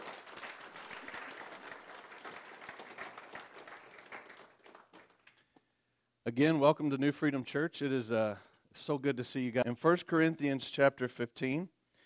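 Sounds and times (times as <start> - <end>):
church congregation applauding at a morning service at New Freedom Church: 0.0 - 5.4
speech: 6.3 - 11.8.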